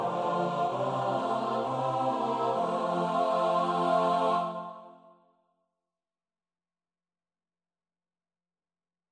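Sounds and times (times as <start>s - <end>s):
SATB choir part practice: 0.0s - 5.2s.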